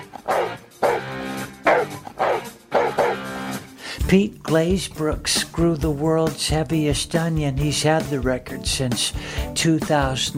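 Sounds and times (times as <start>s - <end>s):
golden retriever barking loudly: 0.0s - 3.5s
speech: 4.1s - 10.3s.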